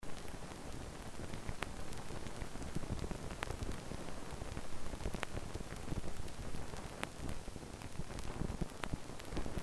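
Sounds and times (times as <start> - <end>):
vinyl crackles: 0.0 - 9.6.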